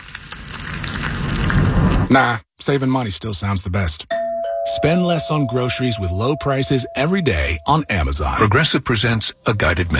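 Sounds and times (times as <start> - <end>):
bacon sizzling in a hot pan: 0.0 - 2.1
speech: 2.1 - 9.9.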